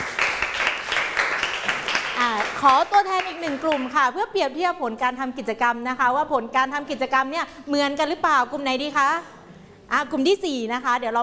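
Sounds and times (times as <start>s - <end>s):
audience applause: 0.0s - 3.9s
speech: 2.6s - 11.2s.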